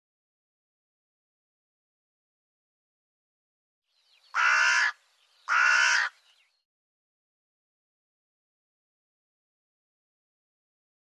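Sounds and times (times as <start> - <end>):
bird cawing: 4.2 - 6.5.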